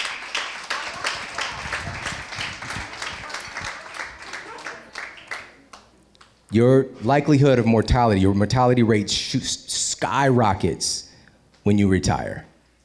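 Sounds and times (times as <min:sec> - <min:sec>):
crowd clapping: 0:00.0 - 0:06.4
speech: 0:06.5 - 0:12.5.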